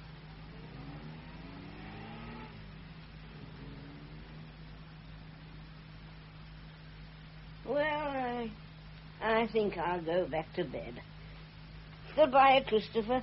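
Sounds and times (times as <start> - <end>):
car engine revving and accelerating: 0.0 - 5.2
speech: 9.2 - 11.1, 12.2 - 13.2.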